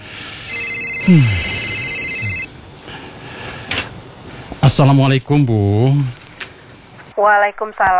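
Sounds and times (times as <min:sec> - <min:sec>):
electronic phone ringtone for an incoming call: 0:00.5 - 0:02.5
speech: 0:01.0 - 0:01.4, 0:04.7 - 0:06.2, 0:07.2 - 0:07.9.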